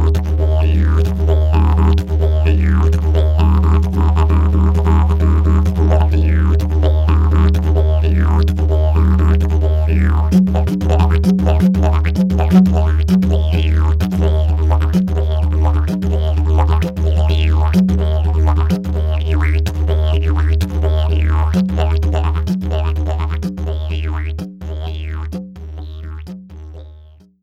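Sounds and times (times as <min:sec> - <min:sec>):
didgeridoos: 0:00.0 - 0:27.3.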